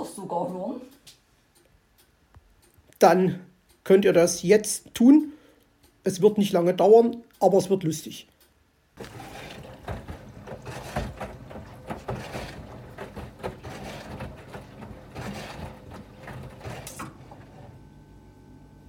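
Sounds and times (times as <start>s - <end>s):
speech: 0.3s - 1.1s, 3.0s - 5.4s, 6.0s - 8.3s, 9.0s - 9.3s
old washer-dryer running: 9.0s - 18.1s.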